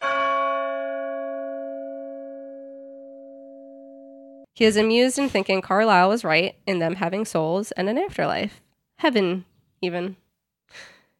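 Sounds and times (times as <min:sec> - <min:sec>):
clock bell tolling: 0:00.0 - 0:04.5
speech: 0:04.6 - 0:10.9.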